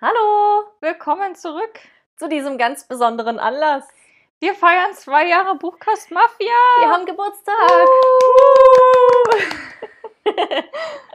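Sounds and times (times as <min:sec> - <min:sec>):
speech: 0:01.0 - 0:11.1
person cheering: 0:07.6 - 0:09.8
light clapping: 0:07.6 - 0:09.9.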